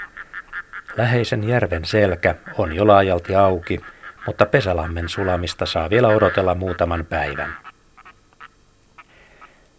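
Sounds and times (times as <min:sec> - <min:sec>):
red-throated loon cackling call in flight: 0:00.0 - 0:01.2, 0:03.7 - 0:09.6
soft hiss: 0:00.0 - 0:09.7
speech: 0:01.0 - 0:07.6.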